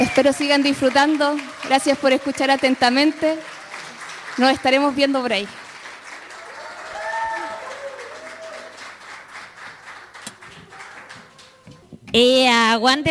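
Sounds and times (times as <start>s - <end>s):
speech: 0.0s - 3.6s, 4.4s - 5.6s, 12.1s - 13.0s
crowd audience applause: 0.0s - 11.9s.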